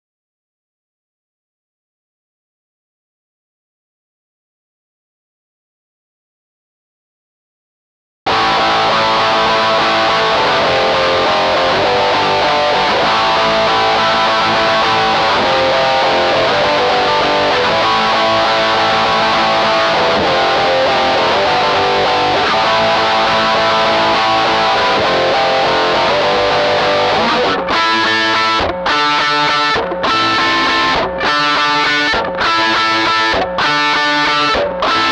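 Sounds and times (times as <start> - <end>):
electric guitar through studio preamp: 8.3 - 35.0.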